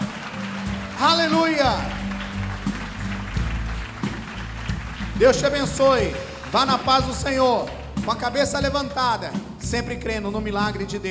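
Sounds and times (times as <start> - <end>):
audience applauding: 0.0 - 8.8
speech: 5.2 - 11.0.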